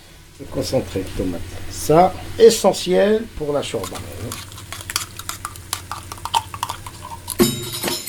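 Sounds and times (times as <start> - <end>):
speech: 0.4 - 4.6
metal utensils stirring in a cooking pot of chorba: 3.8 - 7.8.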